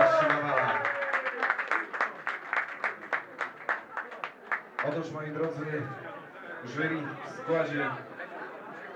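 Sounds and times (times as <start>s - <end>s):
audience applause: 0.0s - 4.8s
speech: 4.9s - 8.1s.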